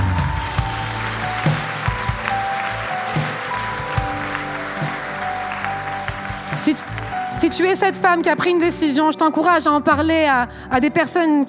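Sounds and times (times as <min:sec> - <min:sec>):
audience applause: 0:00.0 - 0:08.5
speech: 0:06.6 - 0:11.4.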